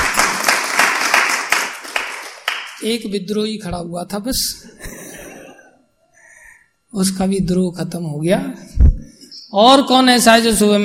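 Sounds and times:
students clapping in a class: 0:00.0 - 0:02.8
speech: 0:02.8 - 0:05.0, 0:07.0 - 0:08.7, 0:09.5 - 0:10.8.

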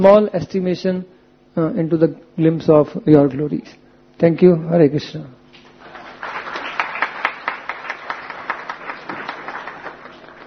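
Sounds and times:
speech: 0:00.0 - 0:05.4
audience applause: 0:05.8 - 0:10.4.

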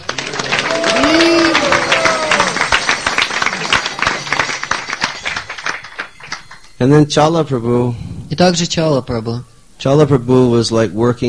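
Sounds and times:
audience applause: 0:00.0 - 0:06.7
speech: 0:06.8 - 0:11.2.

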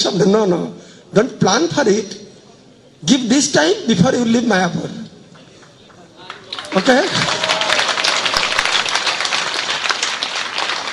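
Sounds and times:
speech: 0:00.0 - 0:02.2, 0:03.0 - 0:05.0, 0:06.8 - 0:07.3
audience clapping: 0:05.4 - 0:10.9.

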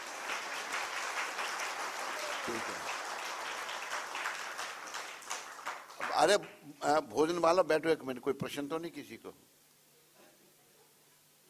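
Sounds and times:
crowd audience clapping: 0:00.0 - 0:06.6
speech: 0:02.5 - 0:03.0, 0:06.2 - 0:09.5.

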